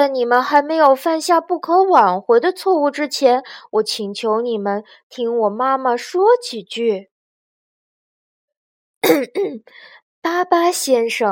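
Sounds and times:
speech: 0.0s - 7.1s, 9.1s - 11.3s
throat clearing: 9.0s - 9.6s.

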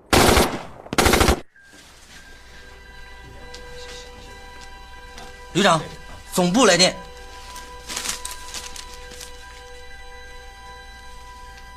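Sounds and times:
machine gun fire: 0.0s - 1.4s
speech: 5.6s - 7.0s.

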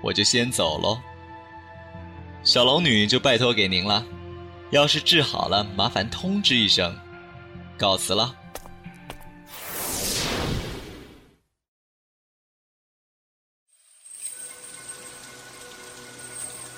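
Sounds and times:
speech: 0.0s - 1.1s, 2.4s - 7.0s, 7.8s - 8.4s
rain falling: 13.8s - 16.7s.

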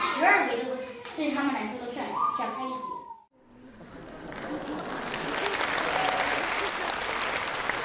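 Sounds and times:
speech: 0.2s - 3.0s
audience applause: 4.1s - 7.8s.

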